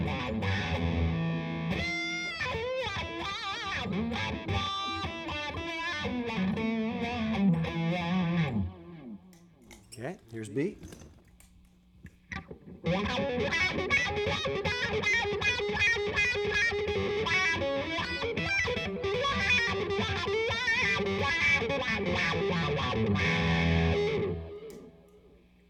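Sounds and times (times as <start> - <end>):
distorted electric guitar played through a wah pedal: 0.0 - 9.2, 12.3 - 24.9
speech: 10.2 - 11.1.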